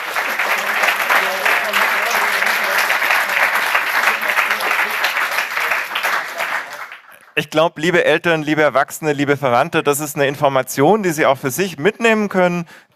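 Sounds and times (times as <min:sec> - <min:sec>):
audience applause for the team's first project: 0:00.0 - 0:07.4
speech: 0:07.4 - 0:12.9.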